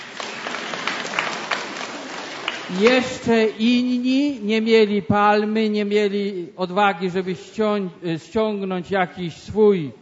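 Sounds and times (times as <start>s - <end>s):
audience applause for a child in a group setting: 0.0s - 3.2s
speech: 2.7s - 10.0s.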